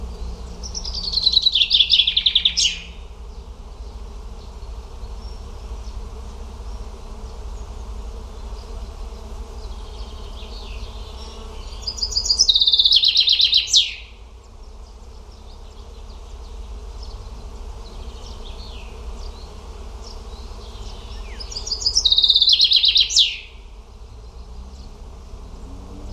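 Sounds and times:
bird song of quick repeated high chirping notes: 0:00.1 - 0:03.1, 0:09.8 - 0:14.1, 0:20.1 - 0:23.6.

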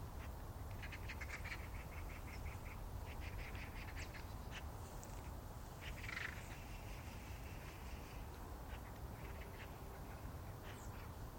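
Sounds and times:
bird giving hoarse drawn-out rasping calls: 0:00.2 - 0:11.2.

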